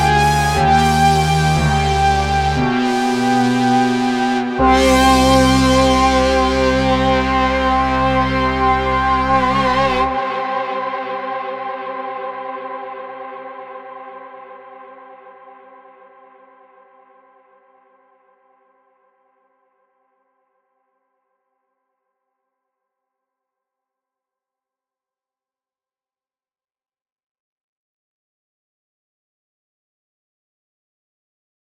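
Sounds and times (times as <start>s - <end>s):
gloomy brass: 0.0s - 13.0s.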